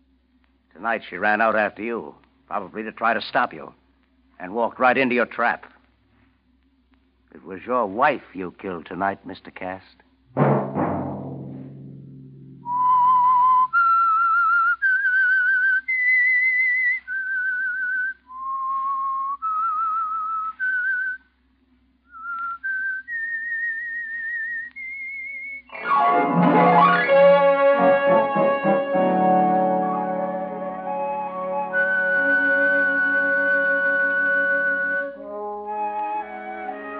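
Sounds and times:
low steady hum: 0:00.0 - 0:36.4
speech: 0:00.8 - 0:03.8, 0:04.4 - 0:05.7, 0:07.4 - 0:10.5
whistled theme melody: 0:12.6 - 0:21.2, 0:22.1 - 0:36.9
loud orchestral chord: 0:25.7 - 0:33.4.

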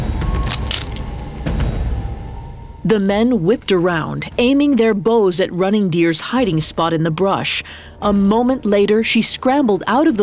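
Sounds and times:
twig snapping underfoot: 0:00.4 - 0:01.1
speech: 0:02.8 - 0:10.2.

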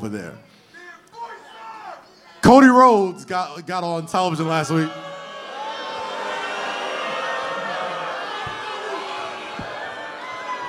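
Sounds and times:
speech: 0:00.0 - 0:00.6, 0:02.5 - 0:05.1
shouts: 0:01.1 - 0:02.1, 0:04.3 - 0:10.6
crowd booing: 0:04.2 - 0:10.6.

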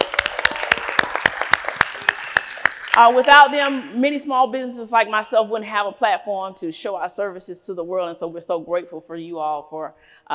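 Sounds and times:
audience applause: 0:00.0 - 0:03.4
speech: 0:03.0 - 0:10.3.

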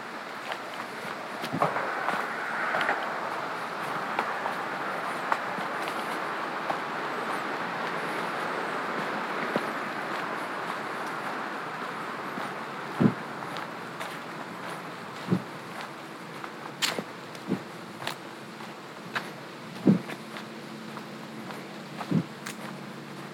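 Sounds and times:
steady hiss: 0:00.0 - 0:23.3
boots scuffing on gravel: 0:00.4 - 0:04.7, 0:08.9 - 0:22.8.

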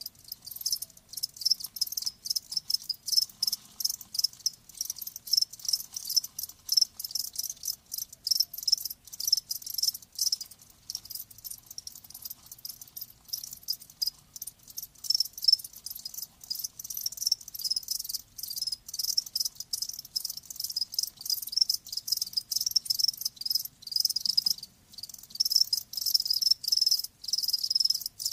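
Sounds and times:
crickets chirping: 0:00.0 - 0:28.3.

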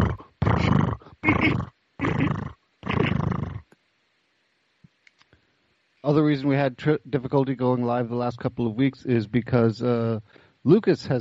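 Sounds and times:
cat purring loudly: 0:00.0 - 0:03.6
speech: 0:06.1 - 0:11.1.

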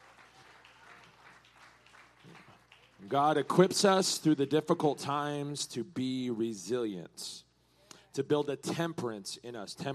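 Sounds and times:
audience hand clap: 0:00.0 - 0:04.0
speech: 0:03.0 - 0:07.4, 0:08.2 - 0:09.9.

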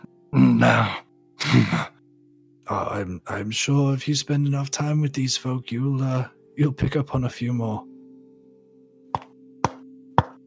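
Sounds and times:
speech: 0:00.4 - 0:01.0, 0:01.6 - 0:02.0, 0:02.7 - 0:07.9
knuckles knocking on a head: 0:09.1 - 0:10.4.

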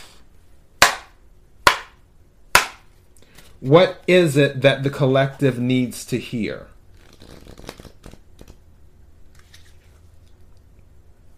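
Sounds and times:
speech: 0:03.6 - 0:06.8
tarot card deck being split: 0:07.0 - 0:08.6
tarot cards rustling: 0:07.0 - 0:08.6, 0:09.3 - 0:10.5.

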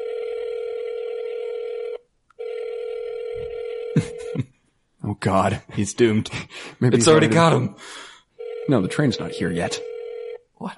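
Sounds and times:
telephone call ringback tones: 0:00.0 - 0:04.4, 0:08.4 - 0:10.4
speech: 0:04.0 - 0:04.5, 0:05.2 - 0:08.1, 0:08.7 - 0:09.9.

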